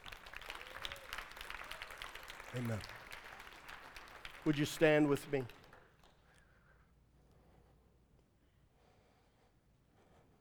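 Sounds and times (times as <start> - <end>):
audience clapping: 0.0 - 6.4
speech: 2.5 - 3.0, 4.4 - 5.6.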